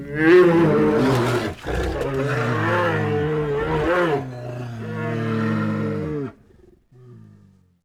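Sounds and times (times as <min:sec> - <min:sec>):
grunt: 0:00.1 - 0:07.4.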